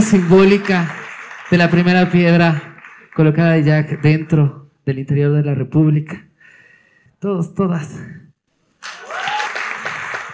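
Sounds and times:
audience applause at a ceremony unveiling a commemorative plaque: 0:00.0 - 0:04.3, 0:08.8 - 0:10.3
speech: 0:00.1 - 0:06.2, 0:07.2 - 0:08.2.

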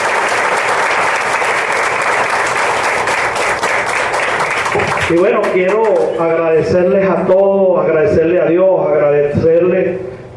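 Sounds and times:
audience applause: 0:00.0 - 0:06.1
speech: 0:05.1 - 0:10.3.

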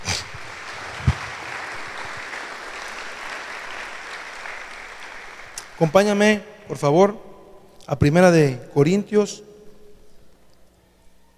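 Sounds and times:
crowd applauding: 0:00.0 - 0:06.2
speech: 0:05.8 - 0:07.3, 0:07.9 - 0:09.5.

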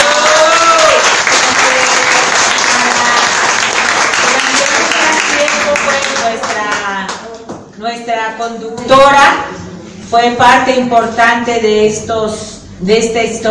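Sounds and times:
audience applause: 0:00.0 - 0:07.2
speech: 0:08.3 - 0:13.4.

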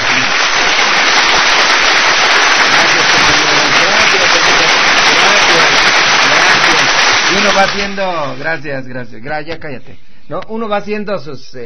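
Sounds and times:
applause: 0:00.0 - 0:08.4
speech: 0:07.6 - 0:11.6.

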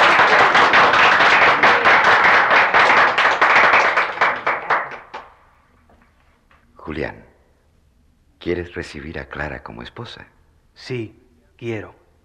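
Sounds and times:
audience applauding newlyweds: 0:00.0 - 0:05.5
speech: 0:08.4 - 0:12.0.

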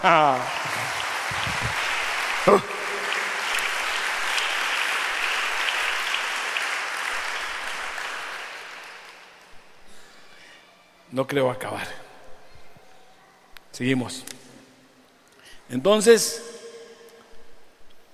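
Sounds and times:
speech: 0:00.0 - 0:02.8, 0:11.2 - 0:12.0, 0:13.8 - 0:14.4, 0:15.7 - 0:16.6
audience applause: 0:00.0 - 0:09.7.

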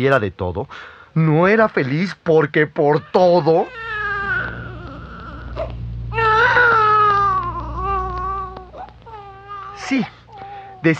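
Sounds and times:
speech: 0:00.0 - 0:03.9, 0:09.9 - 0:10.2
little girl crying: 0:03.0 - 0:09.8.

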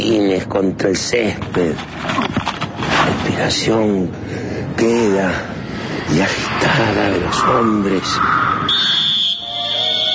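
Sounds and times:
speech: 0:00.1 - 0:08.9
referee's whistle blast: 0:08.6 - 0:10.1.

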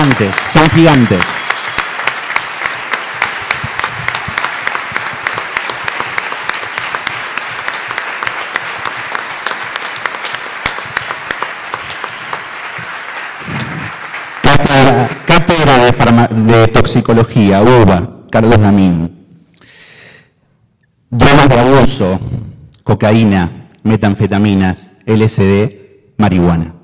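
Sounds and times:
audience applause: 0:00.0 - 0:15.8
speech: 0:00.1 - 0:01.4, 0:16.6 - 0:19.2, 0:21.1 - 0:22.3, 0:22.9 - 0:26.8.

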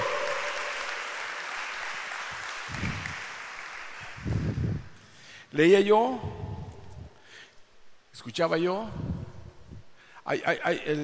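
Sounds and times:
people cheering: 0:00.0 - 0:04.2
audience applause: 0:00.0 - 0:04.8
speech: 0:05.5 - 0:06.4, 0:08.2 - 0:09.1, 0:10.3 - 0:11.0.

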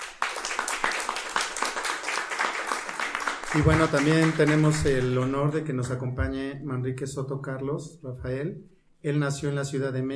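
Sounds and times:
audience applause: 0:00.0 - 0:05.1
speech: 0:03.5 - 0:10.1.

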